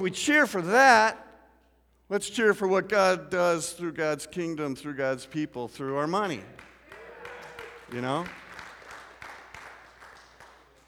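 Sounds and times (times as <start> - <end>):
speech: 0.0 - 1.2, 2.1 - 6.7, 7.9 - 8.4
audience clapping: 6.5 - 10.8.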